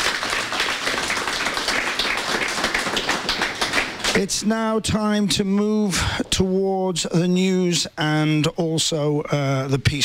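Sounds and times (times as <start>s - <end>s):
audience applause: 0.0s - 4.3s
speech: 4.2s - 10.0s.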